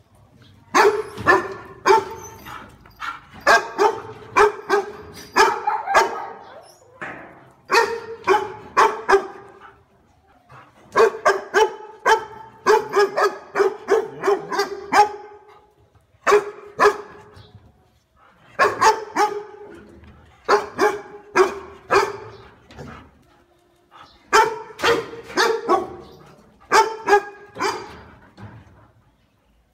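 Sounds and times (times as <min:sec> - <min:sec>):
dog barking: 0:00.7 - 0:02.2, 0:03.4 - 0:06.6, 0:07.7 - 0:09.5, 0:11.0 - 0:15.5, 0:16.3 - 0:17.2, 0:18.6 - 0:19.7, 0:20.5 - 0:22.4, 0:24.3 - 0:26.1, 0:26.7 - 0:28.0.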